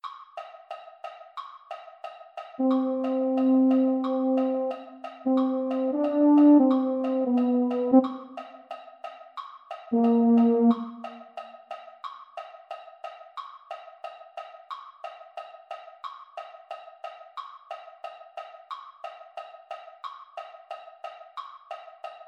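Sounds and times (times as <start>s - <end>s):
baritone voice: 2.6s - 8.2s, 10.0s - 10.9s.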